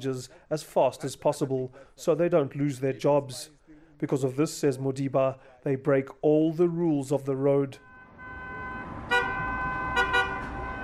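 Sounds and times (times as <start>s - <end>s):
speech: 0.0s - 7.9s
city traffic rumble: 7.8s - 10.8s
minibus taxi horn hooting on busy city roads: 7.8s - 10.8s.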